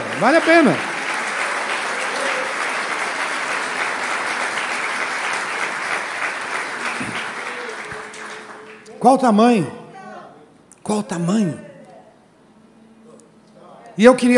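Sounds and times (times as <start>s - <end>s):
audience applauding: 0.0s - 8.9s
speech: 0.2s - 0.9s, 9.0s - 9.8s, 10.9s - 11.7s, 14.0s - 14.3s.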